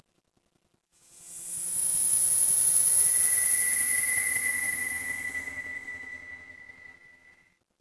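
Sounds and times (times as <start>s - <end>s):
horror wind whisper: 1.7s - 7.5s.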